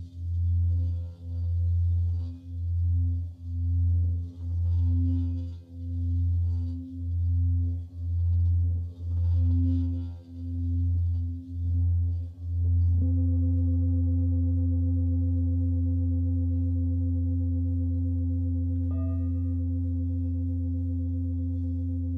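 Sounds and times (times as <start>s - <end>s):
Himalayan bowl humming: 0.0s - 22.1s.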